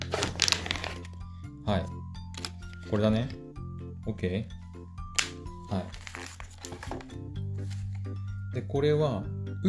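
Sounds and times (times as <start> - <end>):
crinkling plastic packaging of an injection needle: 0.0 - 1.2, 5.2 - 8.0
speech: 1.7 - 2.0, 2.9 - 3.4, 4.0 - 4.6, 5.7 - 6.0, 8.6 - 9.6.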